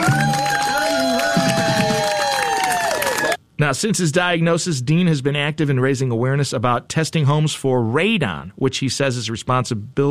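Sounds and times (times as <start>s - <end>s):
clapping: 0.0s - 3.4s
hometown crowd cheering at a race finish line: 0.0s - 3.4s
speech: 3.6s - 10.0s.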